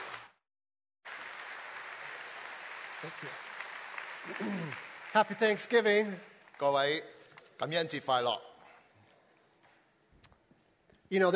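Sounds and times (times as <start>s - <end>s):
audience applause welcoming a pastor at a Richmond Hill gathering: 0.0s - 0.4s, 1.1s - 6.9s
speech: 3.0s - 3.5s, 4.2s - 8.5s, 11.1s - 11.3s.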